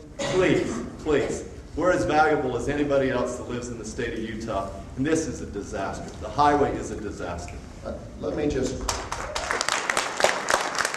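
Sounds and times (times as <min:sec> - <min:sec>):
speech: 0:00.4 - 0:09.1
audience applause at a public meeting: 0:08.9 - 0:10.9.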